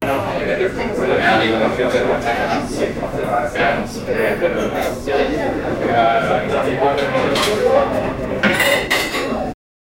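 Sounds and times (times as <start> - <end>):
Austrian restaurant interior ambience: 0.0 - 9.6.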